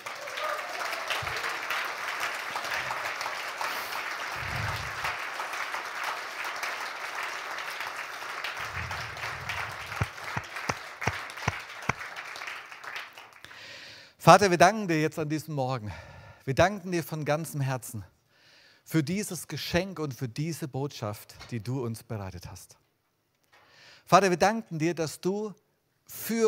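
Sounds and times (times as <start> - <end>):
audience applause: 0.0 - 13.5
speech: 14.3 - 18.1, 18.9 - 22.8, 24.1 - 26.4.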